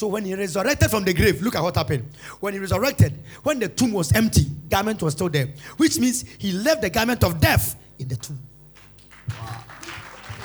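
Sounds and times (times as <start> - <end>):
speech: 0.0 - 8.5
audience clapping: 8.7 - 10.4.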